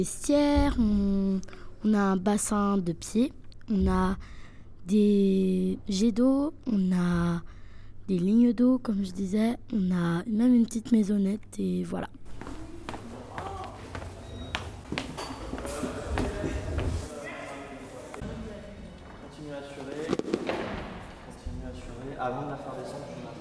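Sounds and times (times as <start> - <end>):
speech: 0.0 - 12.6
footsteps in climbing hall: 12.3 - 22.0.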